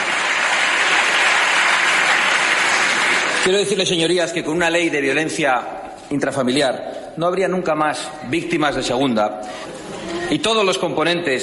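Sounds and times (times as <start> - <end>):
applause in parliament chamber: 0.0 - 3.7
speech: 3.4 - 11.4.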